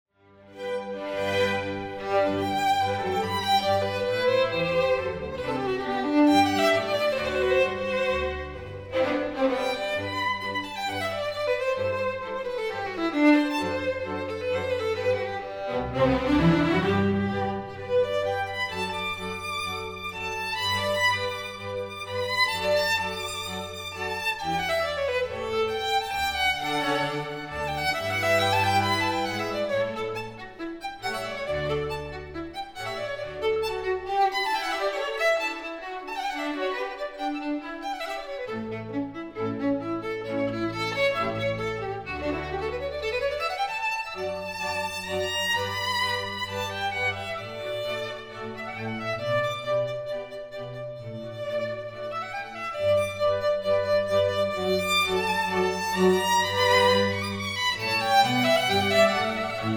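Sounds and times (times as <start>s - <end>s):
violin concerto in G major allegro moderato: 0.2s - 59.7s.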